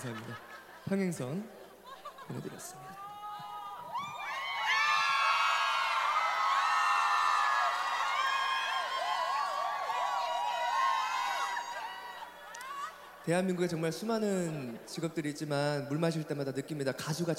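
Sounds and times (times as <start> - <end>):
speech: 0.0 - 1.6, 2.3 - 3.0, 13.3 - 17.3
laughter: 0.0 - 4.1
audience screaming and cheering: 3.0 - 13.3.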